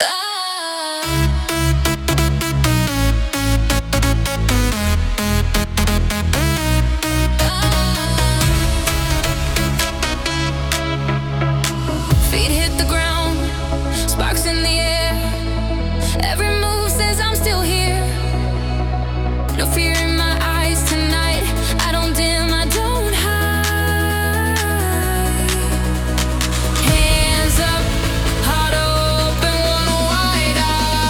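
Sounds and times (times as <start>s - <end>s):
dance floor music: 0.0s - 31.0s.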